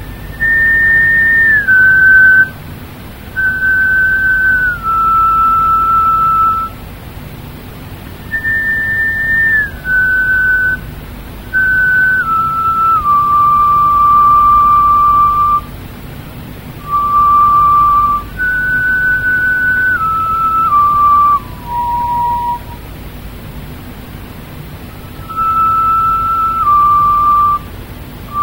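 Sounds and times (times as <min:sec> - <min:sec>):
flutes: 0:00.1 - 0:02.6, 0:03.3 - 0:06.8, 0:08.3 - 0:10.9, 0:11.5 - 0:15.7, 0:16.8 - 0:22.9, 0:24.8 - 0:27.7, 0:28.3 - 0:28.4.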